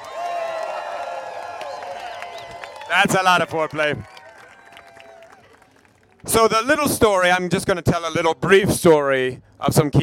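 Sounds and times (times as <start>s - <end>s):
audience applause: 0.0s - 6.2s
speech: 2.9s - 4.1s, 6.3s - 10.0s.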